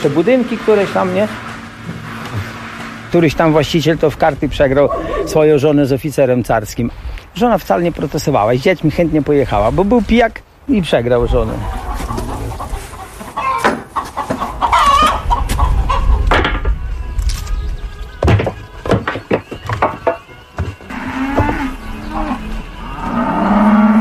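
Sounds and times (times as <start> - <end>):
speech: 0.0 - 1.5, 3.1 - 11.8
hens clucking: 0.1 - 5.7, 11.0 - 16.9, 18.0 - 23.9
cows mooing: 4.8 - 5.5, 20.4 - 23.9.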